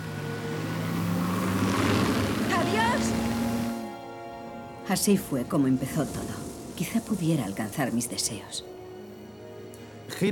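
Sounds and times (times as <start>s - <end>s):
car engine revving as car accelerates away: 0.0s - 4.2s
speech: 4.9s - 8.8s, 10.1s - 10.3s.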